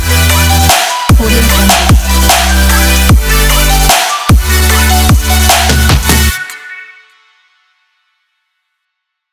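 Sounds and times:
future bass music: 0:00.0 - 0:07.0.

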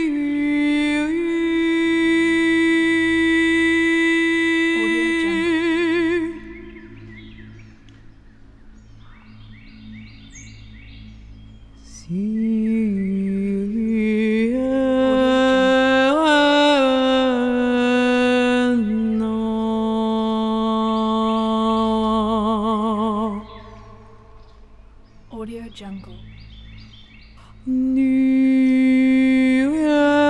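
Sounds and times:
shamanic woman chanting in the forest: 0:00.0 - 0:07.1, 0:11.9 - 0:24.3, 0:25.3 - 0:26.3, 0:27.5 - 0:30.2.

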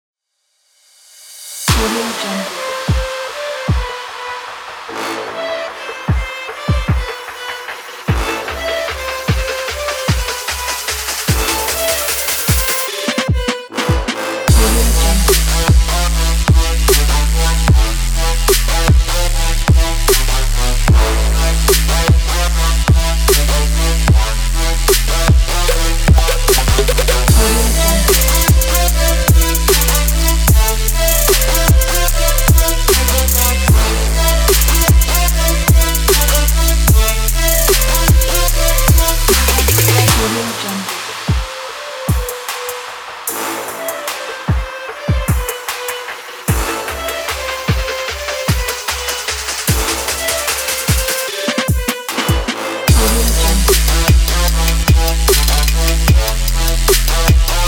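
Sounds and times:
trap beat: 0:01.6 - 0:57.6.

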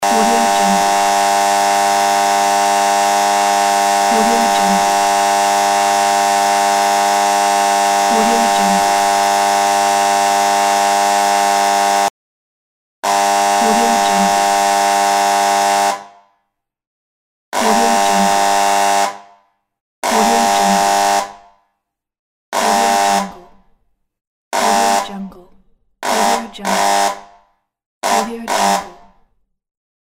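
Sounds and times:
buzzer: 0:00.0 - 0:12.1, 0:13.0 - 0:16.2, 0:17.6 - 0:19.3, 0:20.0 - 0:21.5, 0:22.6 - 0:23.6, 0:24.6 - 0:25.3, 0:26.0 - 0:27.4, 0:28.0 - 0:29.3.

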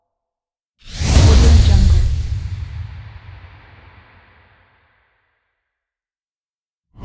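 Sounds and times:
fast swoosh: 0:00.9 - 0:04.6.

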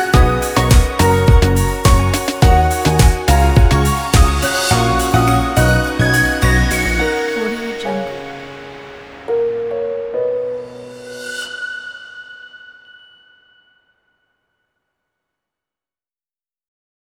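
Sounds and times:
upbeat summer pop music: 0:00.0 - 0:11.4.

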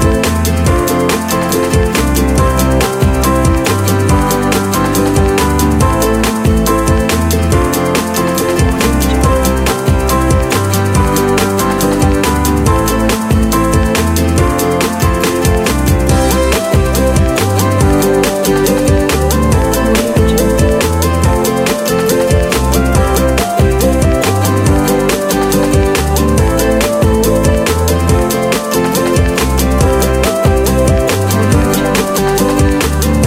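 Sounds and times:
corporate ukulele music: 0:00.0 - 0:33.2.

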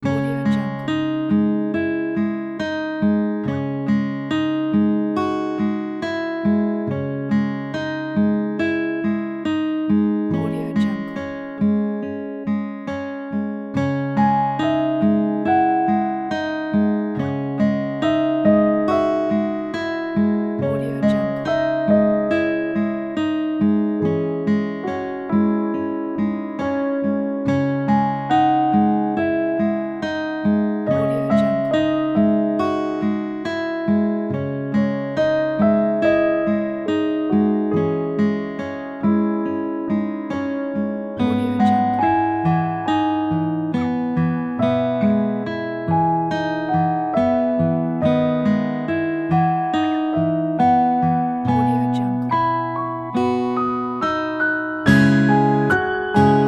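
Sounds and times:
emotional guitar: 0:00.0 - 0:56.4
piano: 0:00.0 - 0:56.4.

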